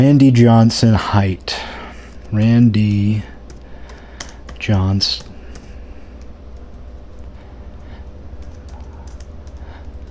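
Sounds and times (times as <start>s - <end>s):
speech: 0.0s - 1.7s, 2.3s - 3.3s, 4.6s - 5.3s
steady hum: 0.0s - 10.1s
slow typing on a computer keyboard: 2.8s - 7.3s, 8.4s - 10.1s.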